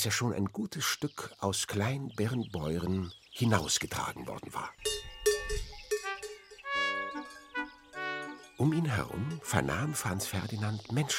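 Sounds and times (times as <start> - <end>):
speech: 0.0 - 5.7, 8.6 - 11.1
cowbells ringing: 4.7 - 11.1.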